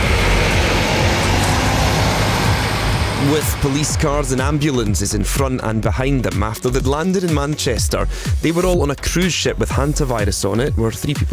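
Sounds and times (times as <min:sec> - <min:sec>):
buses driving along a road: 0:00.0 - 0:05.8
speech: 0:03.3 - 0:11.3.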